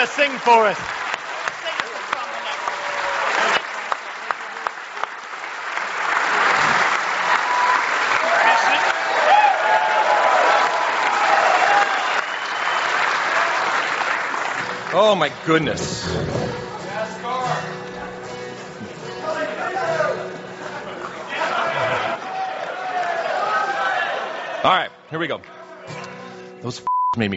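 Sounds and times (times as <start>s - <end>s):
speech: 0.0s - 1.0s, 15.0s - 16.7s, 24.6s - 25.5s, 26.6s - 27.3s
crowd sustained applause: 0.0s - 16.8s, 19.9s - 24.7s
laughter: 18.8s - 22.6s.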